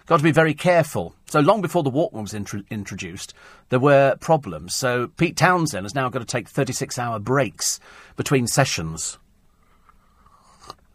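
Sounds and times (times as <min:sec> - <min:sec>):
speech: 0:00.1 - 0:09.2
slurping tea: 0:10.1 - 0:10.9.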